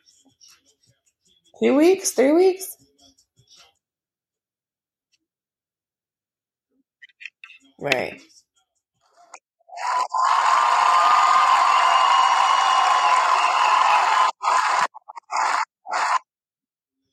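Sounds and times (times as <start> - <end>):
speech: 1.6 - 2.8, 7.8 - 8.3
people cheering: 9.8 - 14.9.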